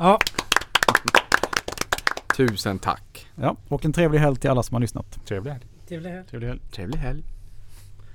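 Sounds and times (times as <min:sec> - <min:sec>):
speech: 0:00.0 - 0:00.3, 0:02.4 - 0:07.4
applause: 0:00.0 - 0:02.7.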